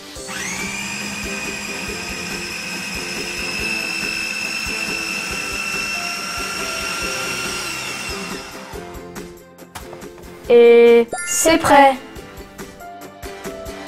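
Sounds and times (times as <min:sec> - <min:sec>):
blender running with fruit inside: 0:00.0 - 0:09.0
speech: 0:10.5 - 0:12.0.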